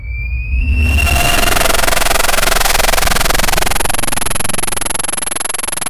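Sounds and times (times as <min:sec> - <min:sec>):
Godzilla charging: 0:00.2 - 0:05.7.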